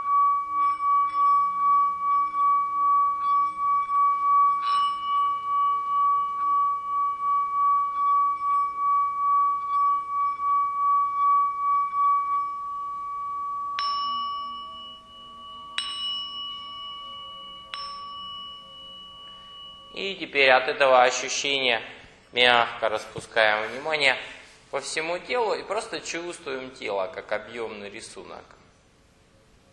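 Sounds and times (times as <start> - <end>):
humming singing bowl: 0.0 - 22.4
speech: 20.0 - 28.6.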